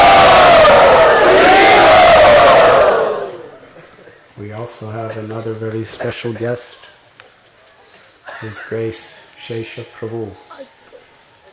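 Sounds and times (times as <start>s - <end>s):
large crowd at a yatra gathering cheering to welcome a guest: 0.0s - 3.6s
speech: 4.8s - 6.9s, 8.4s - 10.7s.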